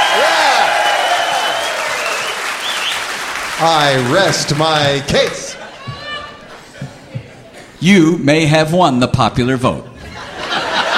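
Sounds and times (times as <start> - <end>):
scattered cheers: 0.0 - 4.4
bowlers in a live audience applauding: 0.0 - 5.8
speech: 3.6 - 5.5, 7.8 - 9.9
laughter: 3.6 - 7.7, 10.0 - 10.9.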